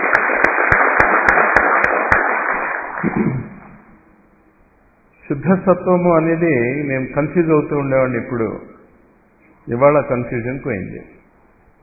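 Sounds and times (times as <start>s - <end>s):
audience clapping: 0.0s - 3.9s
speech: 5.3s - 8.7s, 9.6s - 11.2s.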